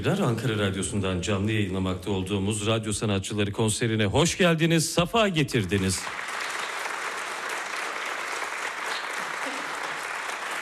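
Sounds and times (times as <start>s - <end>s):
speech: 0.0s - 6.3s
audience applause at a live concert of radio artists in Ankara: 5.6s - 10.6s.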